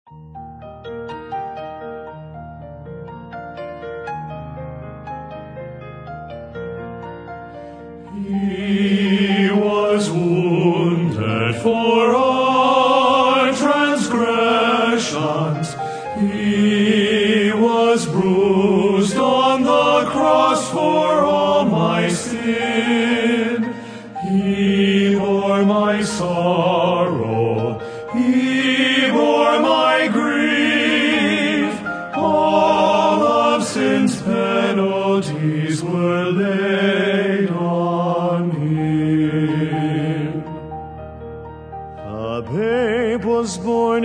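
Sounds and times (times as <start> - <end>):
male vocal quartet: 8.1 - 40.6, 42.0 - 44.0.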